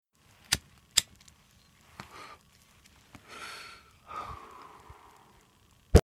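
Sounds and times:
lighting weed: 0:00.4 - 0:01.4.

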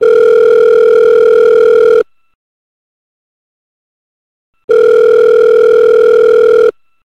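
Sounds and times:
telephone: 0:00.0 - 0:02.0, 0:04.7 - 0:06.8.

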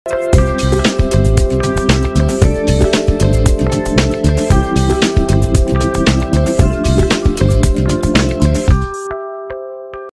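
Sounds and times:
logo jingle: 0:00.1 - 0:09.1.

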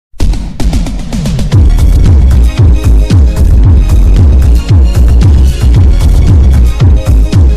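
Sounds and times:
boosted bass: 0:00.2 - 0:07.5.

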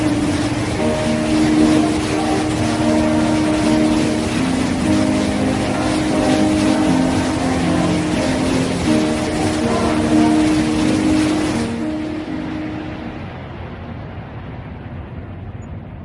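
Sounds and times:
choir with covered stop: 0:00.0 - 0:12.8.

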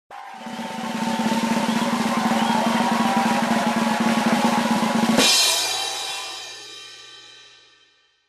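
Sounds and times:
audience: 0:00.1 - 0:06.7
drum roll: 0:00.1 - 0:07.3.

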